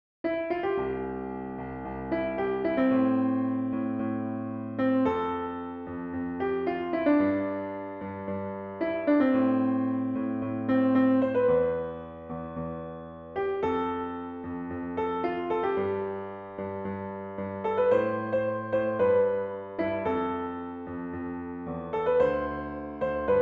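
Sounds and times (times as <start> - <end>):
piano: 0.2 - 23.4.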